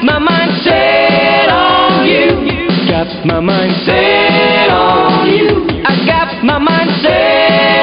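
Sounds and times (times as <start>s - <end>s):
SATB four-part choir singing: 0.2s - 7.8s.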